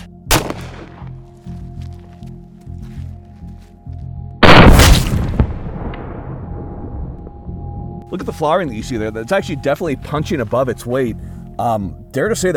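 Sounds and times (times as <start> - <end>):
gunshot firing a Gold Dot round: 0.3 - 1.1, 4.4 - 6.5
speech: 8.1 - 12.5.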